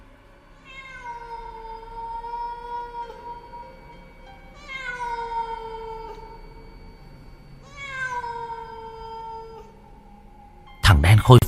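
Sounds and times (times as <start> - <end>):
cat on a household altar yowling eerily: 0.6 - 6.8, 7.6 - 10.1
speech: 10.9 - 11.4.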